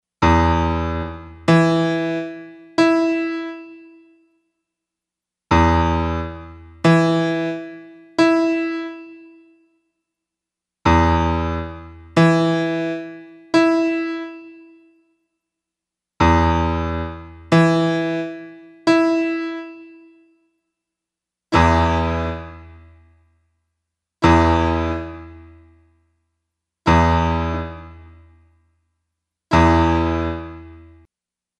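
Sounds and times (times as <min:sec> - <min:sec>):
piano: 0:00.2 - 0:04.2, 0:05.5 - 0:09.6, 0:10.9 - 0:15.0, 0:16.2 - 0:20.4, 0:21.6 - 0:23.0, 0:24.2 - 0:25.7, 0:26.9 - 0:28.3, 0:29.5 - 0:31.0.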